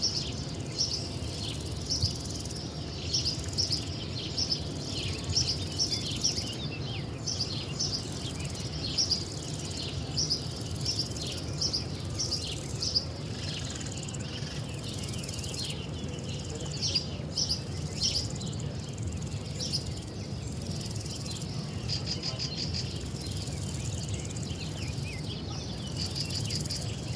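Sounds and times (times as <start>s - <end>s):
birds in Spain: 0.0s - 27.1s
cicadas in Spain: 0.0s - 27.1s
crickets in Spain: 0.0s - 27.1s.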